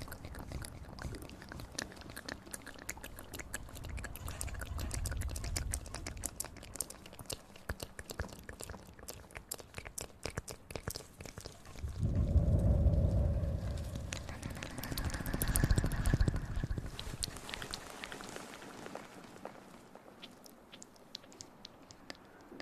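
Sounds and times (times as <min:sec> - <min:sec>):
wet mouth clicks and smacks: 0:00.0 - 0:18.3, 0:20.1 - 0:22.6.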